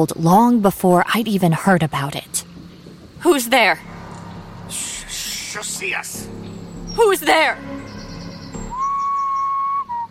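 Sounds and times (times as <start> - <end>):
speech: 0.0 - 2.5, 3.2 - 3.9, 5.6 - 7.9
single whistle in the woods: 8.6 - 10.0.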